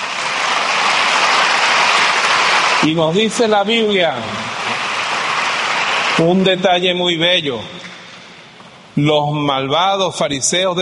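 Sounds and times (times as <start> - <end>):
crowd applause: 0.0 - 8.4
speech: 2.8 - 4.8, 6.2 - 7.9, 9.0 - 10.8.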